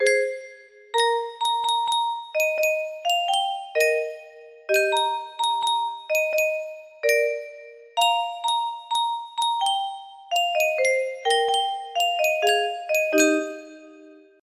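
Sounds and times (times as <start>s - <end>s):
music box melody: 0.0s - 14.4s.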